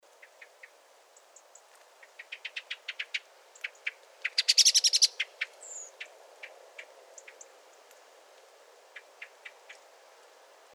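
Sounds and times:
common blackbird chinking calls: 0.1s - 7.5s, 8.9s - 9.9s.

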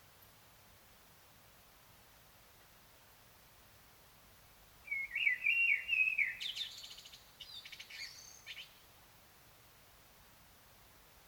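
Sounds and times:
common blackbird singing: 4.9s - 8.8s.

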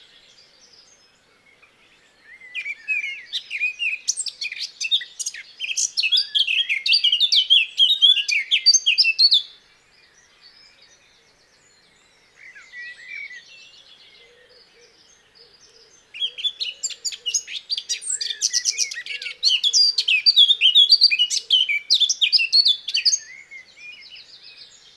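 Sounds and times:
Eurasian blackcap singing: 2.4s - 9.5s, 16.1s - 24.9s.

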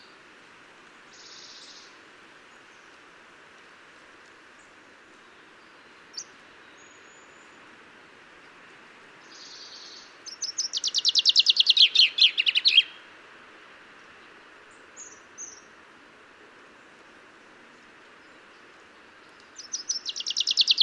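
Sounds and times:
common chaffinch Fringilla coelebs singing: 5.3s - 7.6s, 9.2s - 13.0s, 18.2s - 20.8s.

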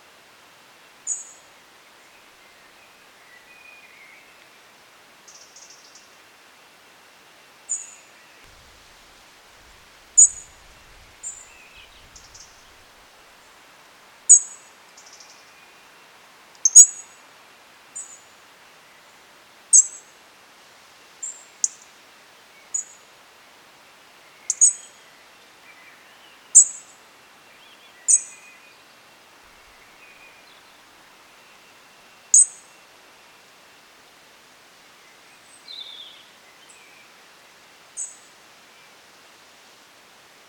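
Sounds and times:
hiss: 0.0s - 40.4s
European robin thin high calls: 9.7s - 12.9s.

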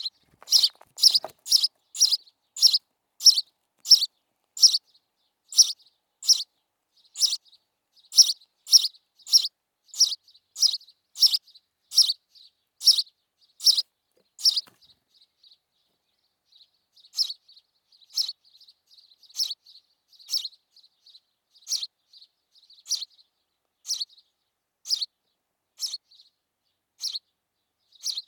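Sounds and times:
house sparrow harsh buzzy chirps: 0.0s - 4.9s, 5.5s - 6.5s, 7.1s - 15.0s, 17.0s - 17.4s, 18.0s - 18.4s, 19.2s - 20.6s, 21.6s - 21.9s, 22.7s - 23.2s, 23.8s - 24.2s, 24.9s - 25.1s, 25.8s - 26.3s, 27.0s - 27.3s, 27.9s - 28.2s.

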